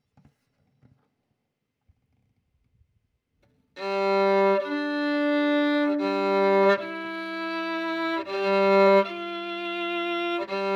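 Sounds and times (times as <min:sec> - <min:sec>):
violin: 0:03.8 - 0:10.7.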